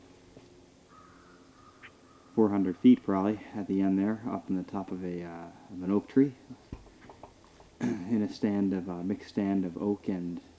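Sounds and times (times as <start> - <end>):
American crows calling from the top of an oak tree: 0.9 - 2.5
speech: 2.4 - 6.8, 7.8 - 10.5.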